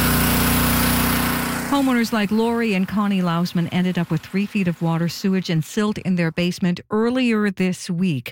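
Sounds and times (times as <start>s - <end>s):
drone of generators in a flood-ravaged town: 0.2s - 5.7s
speech: 1.8s - 8.2s.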